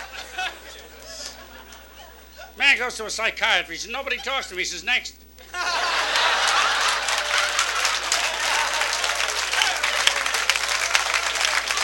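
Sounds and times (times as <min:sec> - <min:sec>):
crowd applauding: 0:00.0 - 0:02.2, 0:05.5 - 0:11.8
faint laughter: 0:00.0 - 0:02.6, 0:05.4 - 0:11.8
speech: 0:02.6 - 0:05.9.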